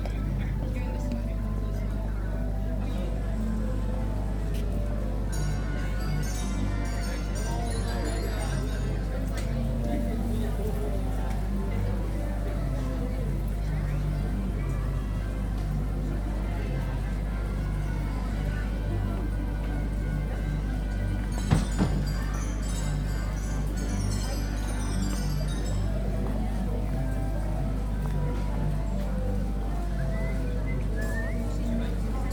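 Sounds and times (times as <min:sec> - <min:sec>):
crowd murmur at Chesterfield market and funfair: 0:00.0 - 0:32.3.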